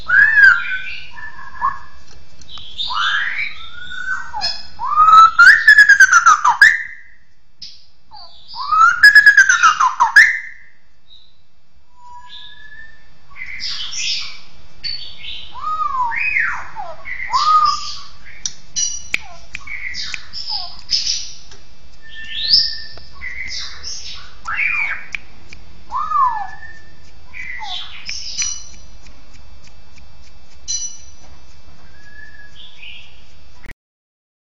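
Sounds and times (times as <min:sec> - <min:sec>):
bird whistling and calling: 0:00.0 - 0:02.0, 0:02.6 - 0:07.2, 0:08.2 - 0:11.2, 0:12.0 - 0:21.4, 0:22.0 - 0:25.2, 0:25.9 - 0:28.7, 0:31.8 - 0:33.2
faint low hum: 0:00.0 - 0:33.7.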